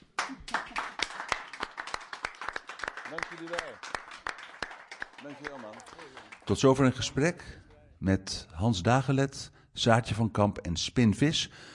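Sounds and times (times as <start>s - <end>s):
audience applause: 0.1s - 7.3s
speech: 3.1s - 4.0s, 5.2s - 11.7s.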